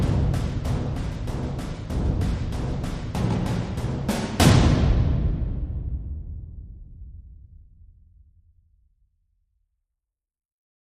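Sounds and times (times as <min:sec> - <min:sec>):
ominous war drums: 0:00.0 - 0:07.2.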